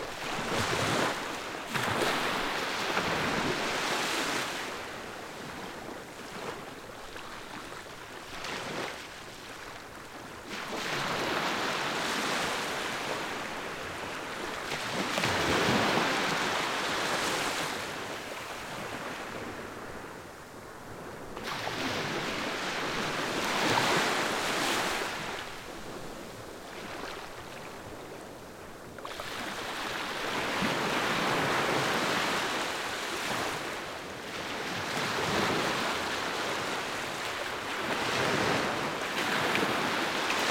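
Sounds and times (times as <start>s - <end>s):
beach waves in Fiji: 0.0s - 40.4s.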